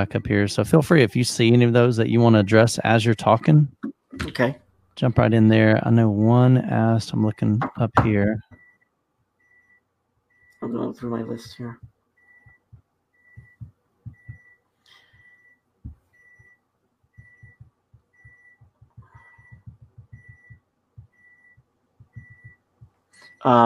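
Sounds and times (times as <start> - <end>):
speech: 0.0 - 8.5, 10.6 - 11.9, 23.4 - 23.6
kitchen timer going off: 9.4 - 14.6, 16.2 - 23.6.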